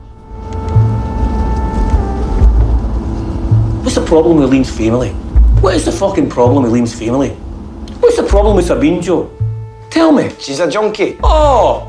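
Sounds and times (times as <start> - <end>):
engine whine: 0.0 - 8.0
car driving on with low engine rumble: 0.0 - 9.6
speech: 4.0 - 7.4, 8.0 - 9.4, 10.0 - 11.8.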